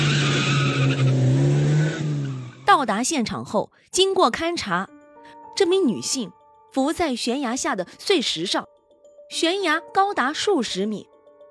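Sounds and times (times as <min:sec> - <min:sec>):
car tires squealing and skidding as a car speeds off: 0:00.0 - 0:02.7
speech: 0:02.8 - 0:05.0, 0:05.6 - 0:08.7, 0:09.3 - 0:11.1.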